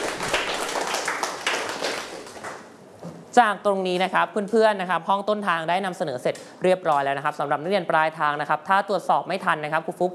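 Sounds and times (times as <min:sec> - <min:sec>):
classroom clapping for a group: 0:00.0 - 0:02.8
speech: 0:03.4 - 0:10.1.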